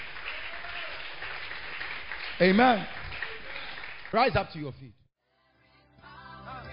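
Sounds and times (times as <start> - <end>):
people clapping hands: 0.0 - 4.8
speech: 2.4 - 3.0, 4.1 - 5.0.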